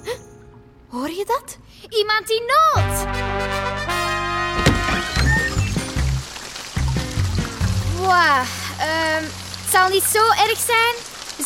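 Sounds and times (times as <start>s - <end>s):
speech: 0.9s - 3.5s, 8.0s - 11.0s
rain: 4.1s - 11.4s.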